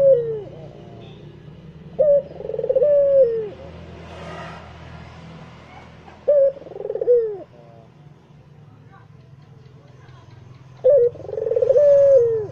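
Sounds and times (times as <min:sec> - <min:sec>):
Barbary dove cooing: 0:00.0 - 0:01.1, 0:01.9 - 0:03.8, 0:05.7 - 0:07.8, 0:10.8 - 0:12.5.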